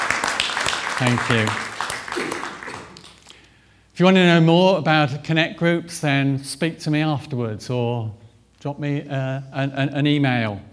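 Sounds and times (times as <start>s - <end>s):
audience applause: 0.0s - 3.3s
speech: 1.0s - 2.4s, 4.0s - 10.7s.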